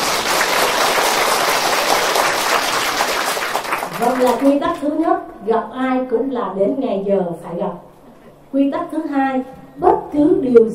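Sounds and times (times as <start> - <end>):
audience applause at a Buddhist monk's meditation talk: 0.0 - 4.5
speech: 4.2 - 7.9, 8.5 - 10.7.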